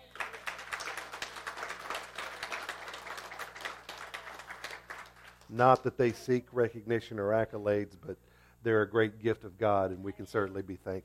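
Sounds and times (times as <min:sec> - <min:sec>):
audience applauding: 0:00.0 - 0:05.9
speech: 0:05.5 - 0:11.0.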